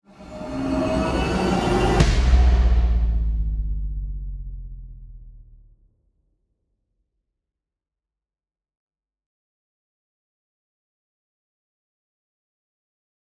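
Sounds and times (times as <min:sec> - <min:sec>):
impact: 0:00.1 - 0:05.6.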